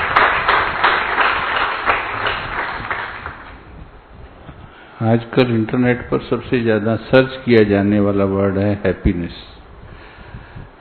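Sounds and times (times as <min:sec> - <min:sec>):
audience clapping for soldiers: 0:00.0 - 0:03.6
speech: 0:05.0 - 0:09.5.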